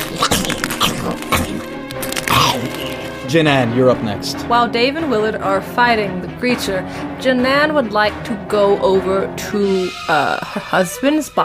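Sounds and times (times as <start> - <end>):
glass crunching in a mouth: 0.0 - 3.2
speech: 3.3 - 11.4.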